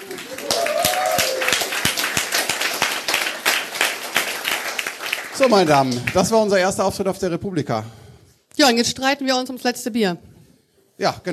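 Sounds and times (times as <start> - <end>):
crowd applause: 0.0 - 6.4
speech: 5.4 - 8.0, 8.6 - 10.3, 11.0 - 11.3.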